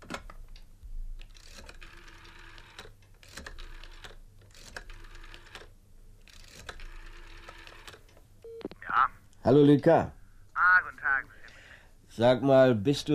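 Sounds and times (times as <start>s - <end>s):
telephone being dialed: 1.4s - 5.7s, 6.3s - 8.7s
speech: 9.5s - 10.2s, 12.2s - 13.1s.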